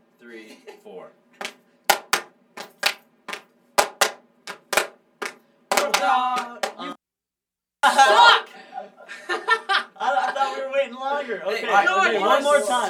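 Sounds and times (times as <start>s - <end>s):
speech: 0.3s - 1.4s, 11.2s - 12.8s
hand clapping rhythm: 1.4s - 7.0s
laughter: 7.8s - 10.8s.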